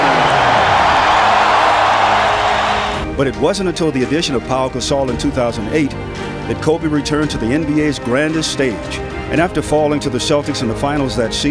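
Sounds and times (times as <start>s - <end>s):
arena crowd cheering for Kobe Bryant: 0.0s - 3.1s
speech: 3.2s - 11.4s.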